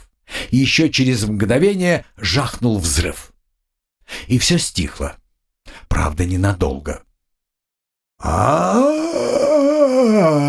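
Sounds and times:
speech: 0:00.5 - 0:03.3, 0:04.3 - 0:05.2, 0:05.8 - 0:07.1, 0:08.2 - 0:09.4
wild wailing scream: 0:08.2 - 0:10.4.

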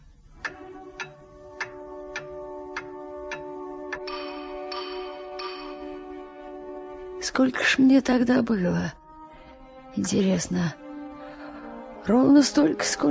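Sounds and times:
pendulum clock with large brass pendulum ticking: 0:00.0 - 0:06.9
speech: 0:07.2 - 0:09.0, 0:10.0 - 0:10.8, 0:12.0 - 0:13.1.

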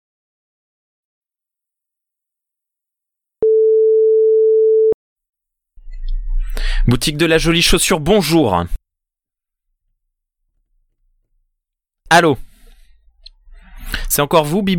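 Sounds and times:
telephone ringback tone while calling a shoe shop: 0:03.4 - 0:04.9
speech: 0:06.8 - 0:08.8, 0:12.1 - 0:12.5, 0:13.9 - 0:14.7.

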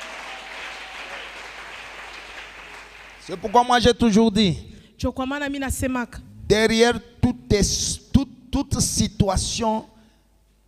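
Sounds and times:
church congregation applauding: 0:00.0 - 0:03.8
speech: 0:03.2 - 0:09.9.

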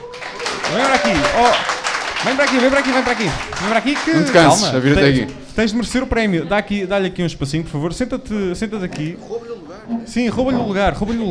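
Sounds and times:
crowd applauding: 0:00.0 - 0:05.5
speech: 0:00.7 - 0:11.2.

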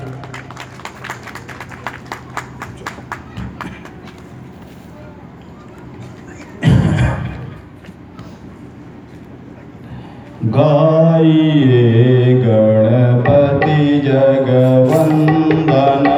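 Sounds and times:
audience clapping in a rhythmic beat: 0:00.0 - 0:04.6, 0:13.3 - 0:16.1
crowd noise: 0:00.0 - 0:16.1
speech: 0:10.6 - 0:16.0.

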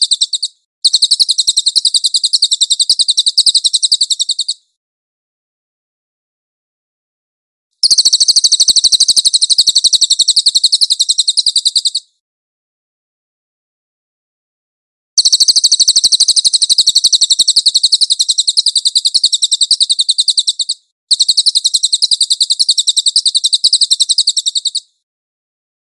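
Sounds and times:
Cililin bird giving a high chattering trill: 0:00.0 - 0:04.6, 0:07.8 - 0:12.1, 0:15.2 - 0:25.0.

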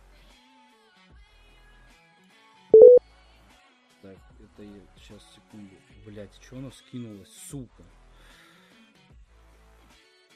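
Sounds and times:
telephone number being dialled, electronic beeps: 0:02.8 - 0:03.0
speech: 0:04.0 - 0:08.0.

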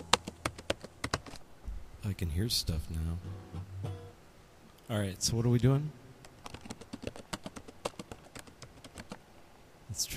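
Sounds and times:
computer keyboard typing: 0:00.0 - 0:01.4, 0:06.4 - 0:09.2
speech: 0:02.1 - 0:03.7, 0:04.9 - 0:06.0, 0:10.0 - 0:10.1.

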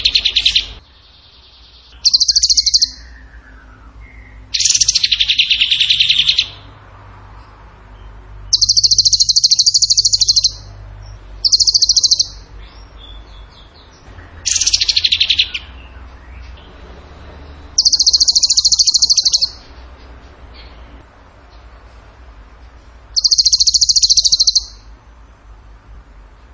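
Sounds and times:
bird high rapid trills: 0:01.4 - 0:06.7, 0:08.5 - 0:10.7, 0:11.4 - 0:12.5, 0:14.4 - 0:16.0, 0:17.7 - 0:19.6, 0:23.2 - 0:24.9.

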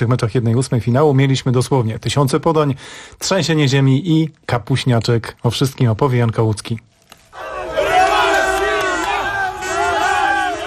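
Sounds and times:
speech: 0:00.0 - 0:07.5
large crowd of football fans roaring and chanting in celebration: 0:07.3 - 0:10.6.

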